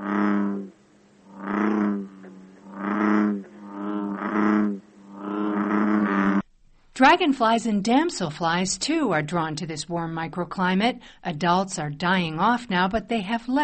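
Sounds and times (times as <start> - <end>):
bullfrog giving its loud chug-a-rum call: 0.0 - 6.5
speech: 7.0 - 13.6.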